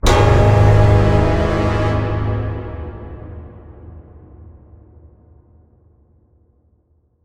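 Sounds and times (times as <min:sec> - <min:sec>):
horror music sting: 0:00.0 - 0:03.8.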